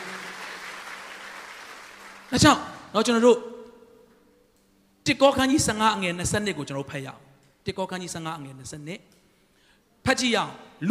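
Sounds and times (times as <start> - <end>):
church congregation clapping during a service: 0.0 - 3.0
speech: 2.3 - 3.5, 5.0 - 9.2, 10.0 - 10.8.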